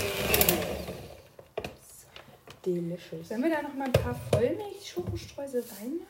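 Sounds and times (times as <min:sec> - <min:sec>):
electric hand mixer stirring dough: 0:00.0 - 0:01.3
speech: 0:02.6 - 0:06.0.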